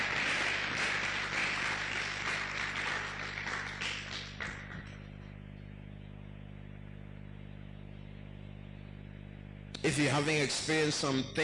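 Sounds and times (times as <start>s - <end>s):
audience clapping: 0.0s - 5.1s
speech: 9.9s - 11.4s.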